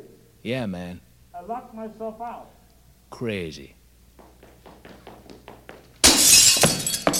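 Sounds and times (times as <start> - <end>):
speech: 0.5 - 3.8
glass shards tinkling as pieces fall: 6.1 - 7.1
window glass shattering: 6.1 - 7.1.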